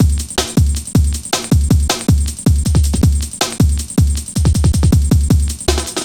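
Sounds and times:
drum loops at 158.5: 0.0s - 6.0s.

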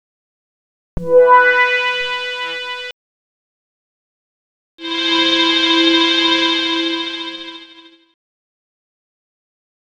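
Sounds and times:
synth pads: 1.0s - 2.9s, 4.8s - 8.0s.

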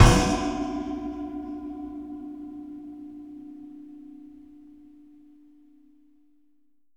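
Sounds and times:
metallic rack strike percussion: 0.0s - 2.6s.

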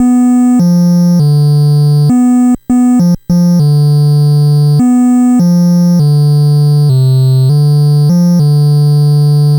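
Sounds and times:
NES chiptune bass: 0.0s - 9.5s.

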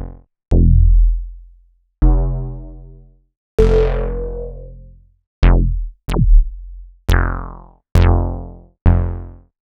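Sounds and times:
Roland MKS-80 synthesizer bass: 0.5s - 1.2s, 2.0s - 9.3s.

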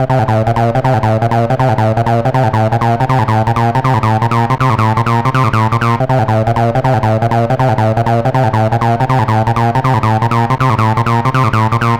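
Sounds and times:
hardcore acid synth loop: 0.0s - 11.9s.

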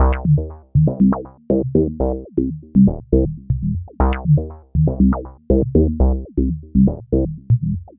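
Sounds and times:
proto-techno bassline: 0.0s - 7.9s.

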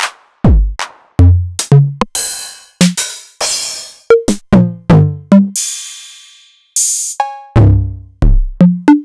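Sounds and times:
Novation Drumstation drum machine: 0.0s - 9.0s.

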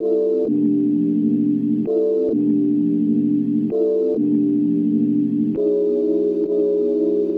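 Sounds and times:
music loop: 0.0s - 7.3s.

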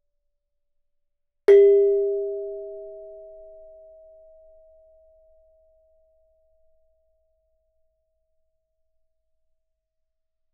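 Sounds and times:
gamelan: 1.5s - 3.2s.

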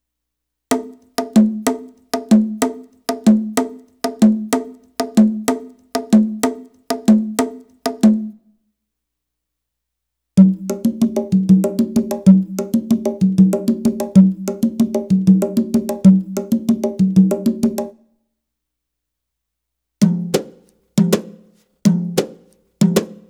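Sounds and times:
Arabic rhythm percussion: 0.7s - 8.4s, 10.4s - 18.0s, 20.0s - 23.2s.

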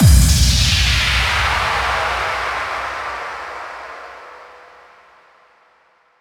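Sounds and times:
effect kick drum hits: 0.0s - 2.4s.

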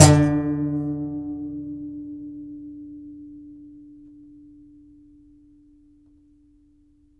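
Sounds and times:
contrabass balalaika plucked strings: 0.0s - 1.3s.

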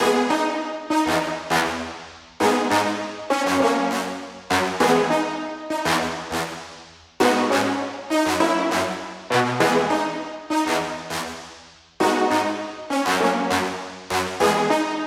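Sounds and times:
brass loop: 0.0s - 15.0s.

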